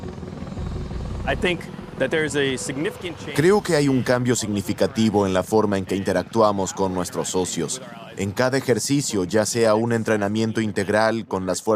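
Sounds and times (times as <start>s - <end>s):
V-22 Osprey tiltrotor aircraft rotor noise: 0.0s - 11.0s
speech: 1.3s - 11.7s.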